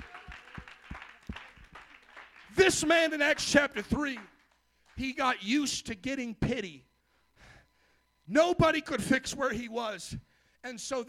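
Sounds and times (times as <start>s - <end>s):
audience clapping hands: 0.0s - 5.2s
speech: 2.6s - 4.3s, 5.0s - 6.9s, 8.3s - 11.0s.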